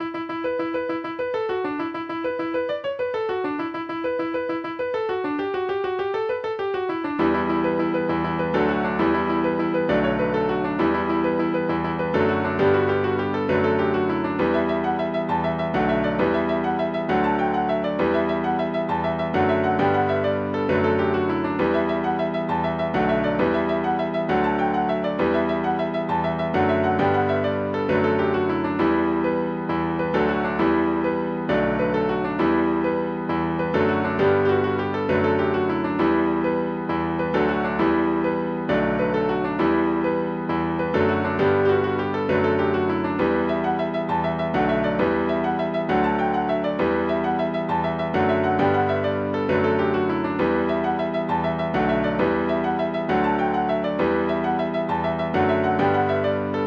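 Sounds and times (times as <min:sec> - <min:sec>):
jig for piano: 0:00.0 - 0:56.6.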